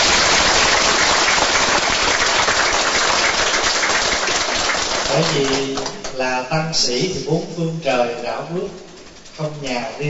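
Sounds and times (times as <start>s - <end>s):
crowd applause: 0.0s - 6.0s
speech: 5.3s - 10.0s.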